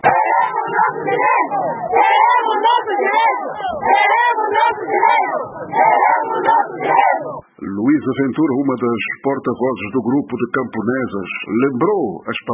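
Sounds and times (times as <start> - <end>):
women shouting protest slogans: 0.0 - 7.4
speech: 8.0 - 12.5.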